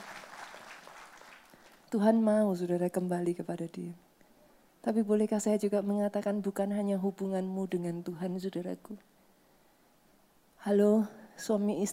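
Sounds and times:
audience applauding: 0.0s - 1.9s
speech: 1.9s - 4.1s, 4.8s - 9.1s, 10.6s - 11.9s.

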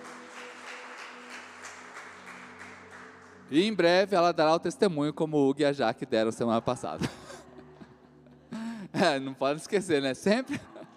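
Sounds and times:
audience applause: 0.0s - 3.5s
speech: 3.5s - 7.2s, 9.0s - 10.7s
laughter: 6.2s - 9.3s, 10.0s - 10.9s.

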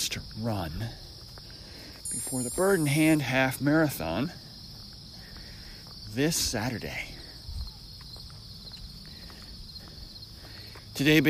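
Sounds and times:
speech: 0.0s - 1.1s, 2.1s - 4.4s, 6.1s - 7.2s, 11.0s - 11.2s
crickets or insects buzzing: 0.1s - 11.2s
footsteps walking up a hill: 0.2s - 11.2s.

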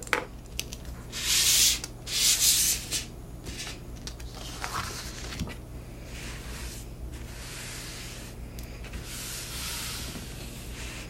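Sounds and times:
low steady hum: 0.0s - 11.0s
paper rustling and crinkling: 3.5s - 5.6s.

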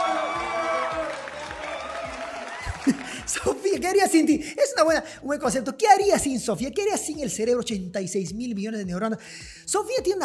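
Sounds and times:
audience applause: 0.0s - 3.4s
speech: 2.8s - 10.2s.

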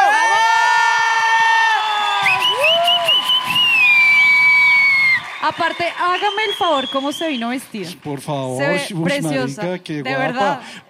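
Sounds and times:
crowd cheering with whoops and shouts: 0.0s - 7.4s
scattered clapping: 2.2s - 8.5s
speech: 5.5s - 10.8s.

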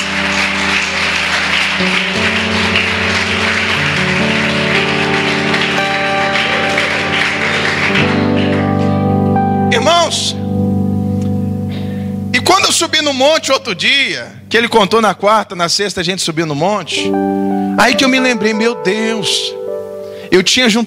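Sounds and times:
audience applauding: 0.0s - 9.2s
organ or keyboard chords: 0.0s - 20.8s
speech: 1.8s - 2.0s, 12.8s - 19.6s, 20.3s - 20.8s.

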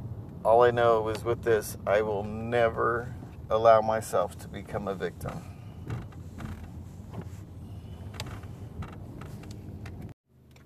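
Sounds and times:
car engine and road rumble heard from inside: 0.0s - 10.6s
speech: 0.4s - 6.0s.

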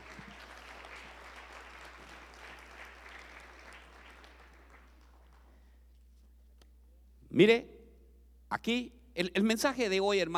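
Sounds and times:
church audience applause: 0.0s - 5.6s
speech: 7.4s - 7.7s, 8.5s - 10.3s.

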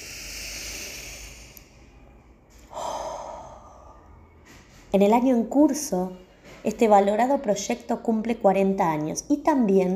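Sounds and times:
group of people at a school gathering taking a deep breath together: 0.0s - 1.9s, 2.5s - 4.4s
speech: 4.9s - 9.9s.

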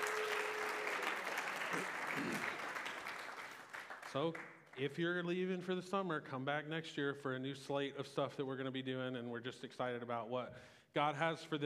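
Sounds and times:
crowd clapping: 0.0s - 4.8s
speech: 1.7s - 2.6s, 4.1s - 11.6s.

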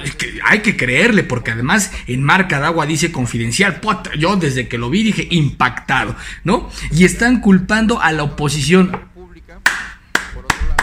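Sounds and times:
speech: 0.1s - 9.1s
applause: 9.6s - 10.8s.

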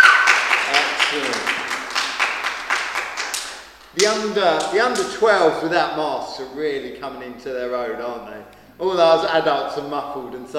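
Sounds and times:
audience clapping: 0.0s - 5.2s
speech: 4.0s - 10.5s.

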